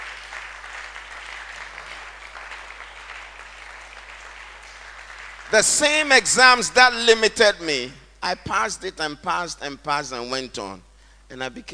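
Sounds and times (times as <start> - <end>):
audience applause: 0.0 - 5.8
speech: 5.5 - 11.7.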